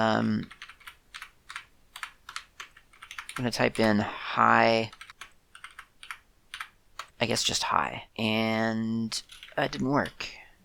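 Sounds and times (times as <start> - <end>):
speech: 0.0 - 0.6, 3.4 - 5.0, 7.2 - 10.4
typing Ruby code on a computer keyboard: 0.4 - 4.0, 4.9 - 7.2, 9.2 - 10.2.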